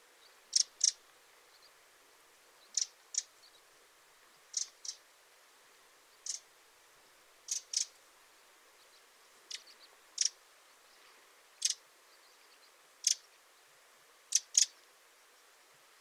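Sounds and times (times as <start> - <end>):
Eurasian wren calling with ticking and churring rattles: 0.2 - 1.8, 2.6 - 3.7, 4.5 - 5.1, 6.1 - 6.5, 7.5 - 8.0, 8.8 - 10.9, 11.6 - 13.4, 14.3 - 14.8.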